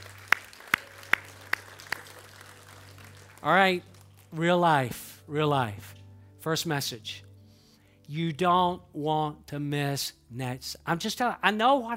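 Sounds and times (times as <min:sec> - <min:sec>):
audience clapping in unison: 0:00.0 - 0:05.0
speech: 0:03.4 - 0:07.3, 0:08.1 - 0:11.9.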